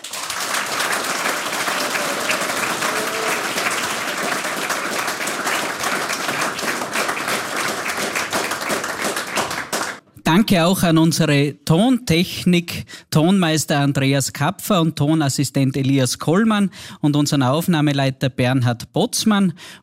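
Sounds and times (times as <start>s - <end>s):
audience applause: 0.0s - 10.0s
speech: 10.5s - 19.8s.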